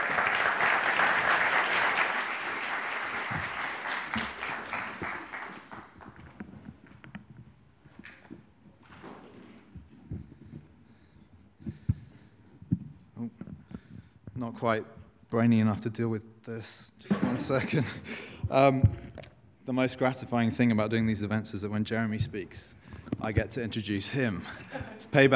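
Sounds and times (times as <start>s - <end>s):
audience clapping to welcome a speaker: 0.0s - 6.7s
speech: 14.5s - 19.0s, 19.7s - 25.3s.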